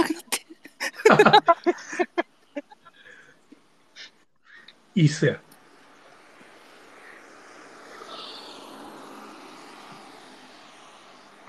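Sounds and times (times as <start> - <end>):
laughter: 0.0 - 3.1
speech: 1.1 - 2.1, 5.0 - 5.5
car passing by outside: 4.7 - 11.4.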